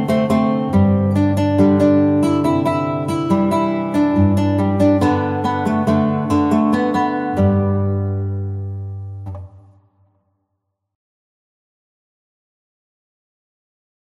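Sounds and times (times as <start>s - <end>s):
fingerstyle guitar: 0.0s - 10.0s.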